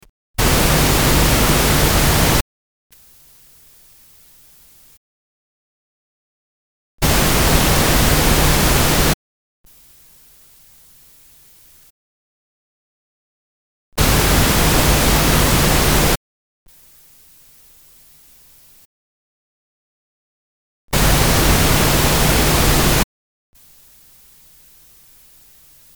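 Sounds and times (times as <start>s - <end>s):
pink noise alternating in phase and antiphase at 0 dB: 0.4s - 2.4s, 7.0s - 9.2s, 14.0s - 16.2s, 21.0s - 23.0s.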